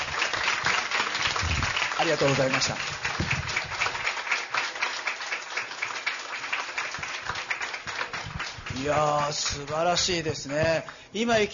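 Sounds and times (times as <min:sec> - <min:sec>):
audience applause: 0:00.0 - 0:11.0
speech: 0:02.0 - 0:03.3, 0:08.8 - 0:11.5.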